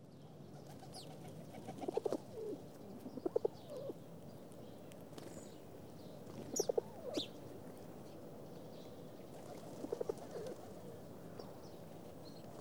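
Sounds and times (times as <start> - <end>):
pigeons cooing softly while feeding in a city: 0.8 - 4.0, 6.3 - 7.4, 9.3 - 11.6.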